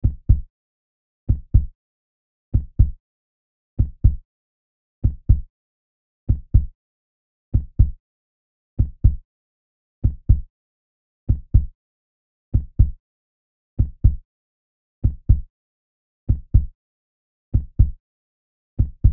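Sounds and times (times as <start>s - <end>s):
heartbeat: 0.0s - 0.4s, 1.3s - 1.7s, 2.6s - 3.0s, 3.8s - 4.2s, 5.0s - 5.4s, 6.3s - 6.7s, 7.6s - 8.0s, 8.8s - 9.2s, 10.0s - 10.4s, 11.3s - 11.7s, 12.6s - 13.0s, 13.8s - 14.2s, 15.0s - 15.5s, 16.3s - 16.7s, 17.6s - 18.0s, 18.8s - 19.1s.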